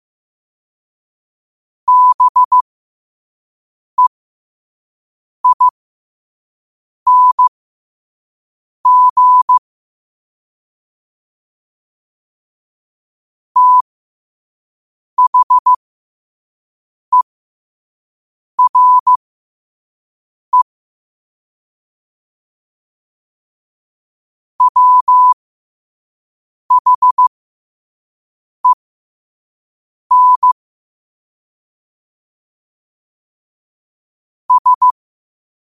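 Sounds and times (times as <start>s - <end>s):
morse code at 5 wpm: 1.9s - 2.6s, 5.4s - 5.8s, 7.1s - 7.5s, 8.9s - 9.6s, 13.6s - 13.8s, 15.2s - 15.8s, 18.6s - 19.2s, 24.6s - 25.4s, 26.7s - 27.3s, 30.1s - 30.6s, 34.5s - 35.0s.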